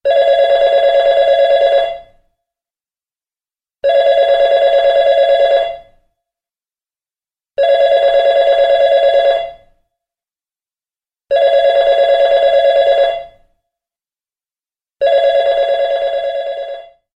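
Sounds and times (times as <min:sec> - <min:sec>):
office phone ringing: 0:00.1 - 0:02.1, 0:03.8 - 0:05.9, 0:07.6 - 0:09.6, 0:11.3 - 0:13.4, 0:15.0 - 0:17.1.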